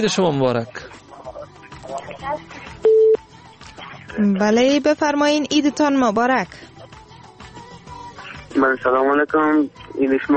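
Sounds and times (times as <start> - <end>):
speech: 0.0 - 1.0, 4.1 - 6.7, 8.6 - 10.3
telephone line tone as a caller is connected to a radio call-in show: 2.8 - 3.2.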